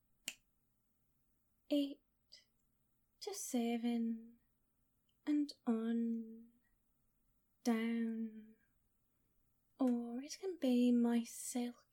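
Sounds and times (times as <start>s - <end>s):
finger snap during a spoken countdown: 0.2s - 0.5s
speech: 1.7s - 2.4s, 3.2s - 4.4s, 5.3s - 6.5s, 7.6s - 8.5s, 9.8s - 11.8s.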